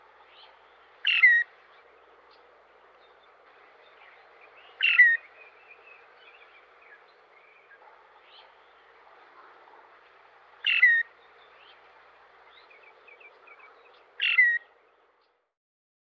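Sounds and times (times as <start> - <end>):
Loggerhead Shrike from Eastern North America: 0.2 - 14.7.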